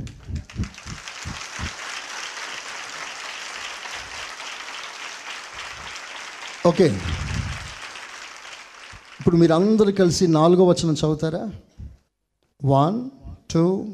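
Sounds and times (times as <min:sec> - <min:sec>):
congregation clapping loudly during a church service: 0:00.0 - 0:10.4
speech: 0:06.6 - 0:07.3, 0:09.3 - 0:11.7, 0:12.6 - 0:13.9.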